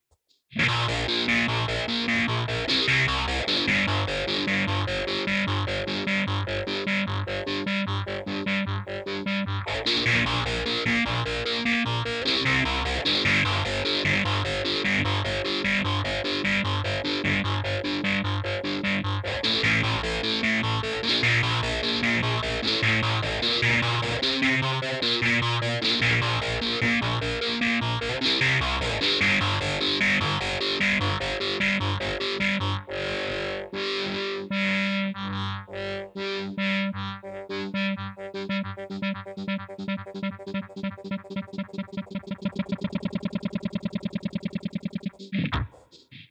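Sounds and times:
Source Audio Ultrawave SA 250 effects pedal tone: 0.6s - 46.2s.

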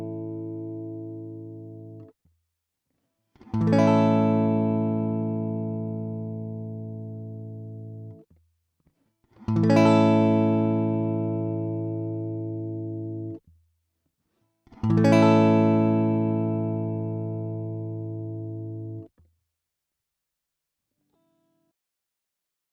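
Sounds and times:
guitar with high-pass filter sweeping low to high: 0.0s - 2.1s, 3.4s - 8.3s, 9.3s - 13.5s, 14.7s - 19.1s.

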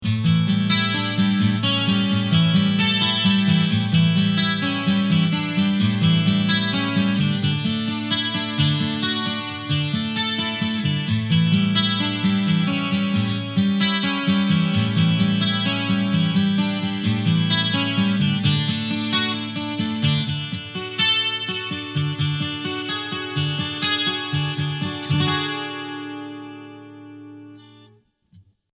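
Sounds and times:
digital 12-string guitar: 0.0s - 28.0s.

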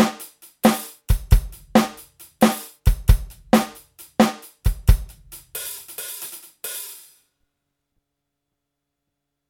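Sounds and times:
Millenium NonaPad electronic drum pad modern pop kit: 0.0s - 6.5s.

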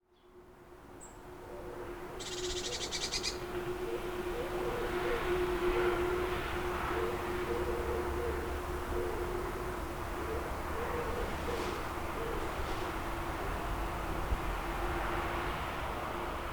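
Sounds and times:
ambient atmosphere recorded on a Zoom Q2n 4K: 0.4s - 16.4s.

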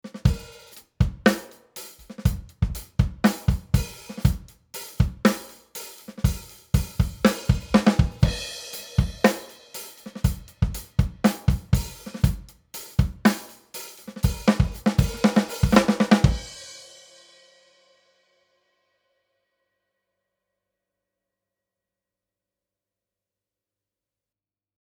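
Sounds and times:
drums without Summit Audio EQP 200B: 0.0s - 18.0s.

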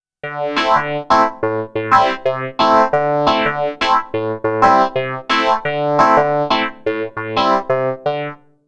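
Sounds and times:
FM synth: 0.2s - 8.4s.

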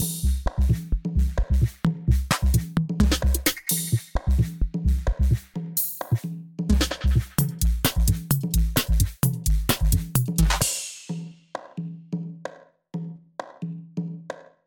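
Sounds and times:
bloc beat: 0.0s - 11.3s.

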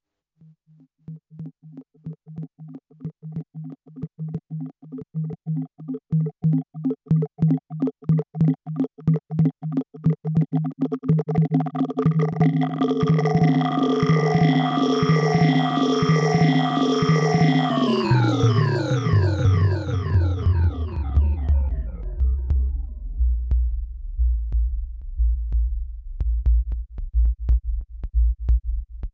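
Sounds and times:
particle drum: 0.5s - 28.8s.

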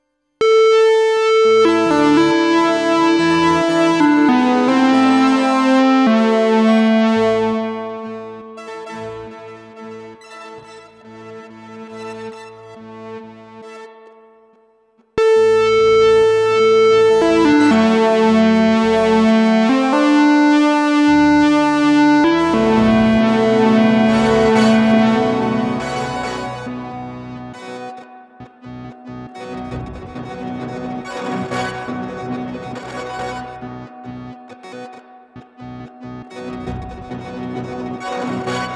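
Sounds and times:
Strymon Magneto pitch under sequencer control: 0.4s - 10.8s, 15.2s - 34.4s.

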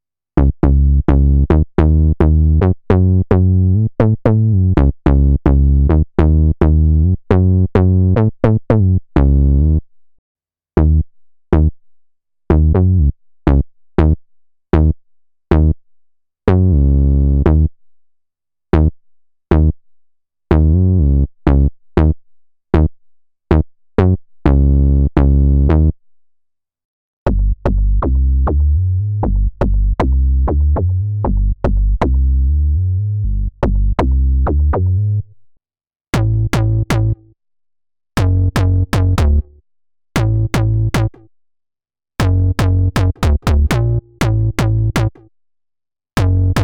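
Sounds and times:
AKAI MPC Live II bassline: 0.4s - 9.9s, 10.8s - 11.8s, 12.5s - 14.2s, 14.8s - 15.8s, 16.5s - 17.7s, 18.8s - 19.8s, 20.5s - 22.2s, 23.5s - 26.0s, 27.3s - 35.4s, 36.2s - 37.3s, 38.2s - 39.6s, 40.2s - 41.3s, 42.2s - 45.3s, 46.2s - 46.6s.

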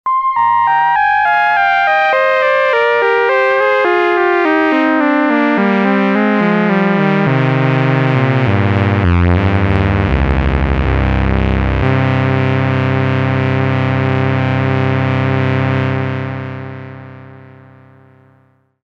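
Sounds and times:
duophonic synth: 0.0s - 17.7s.

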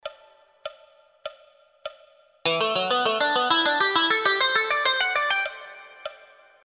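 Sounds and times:
scales in fourths: 2.5s - 6.0s.

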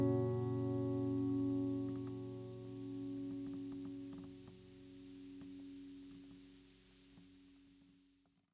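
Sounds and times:
western acoustic guitar: 0.0s - 6.7s.

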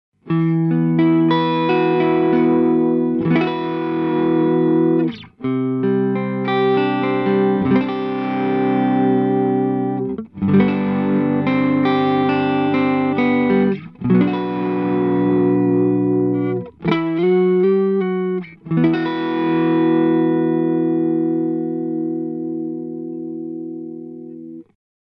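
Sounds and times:
P-90 electric guitar through Korg NuTekt TR-S, full wet: 0.2s - 24.8s.

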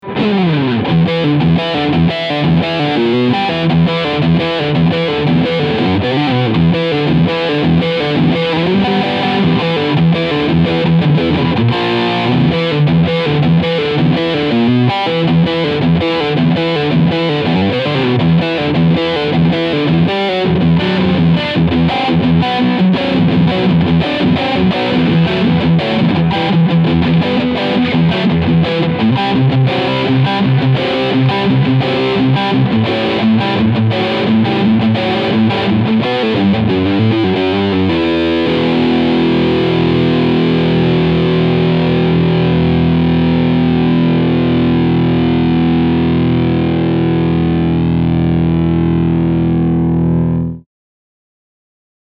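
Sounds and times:
SC Custom Plus electric guitar riff with EMG bridge pickup: 0.0s - 50.6s.

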